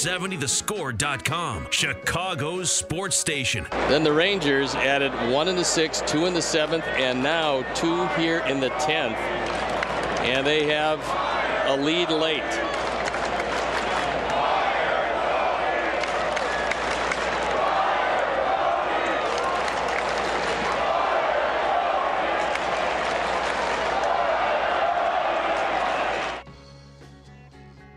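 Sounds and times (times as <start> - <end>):
speech: 0.0 - 12.9
stadium crowd chanting at a baseball game against the Rangers: 4.8 - 26.4.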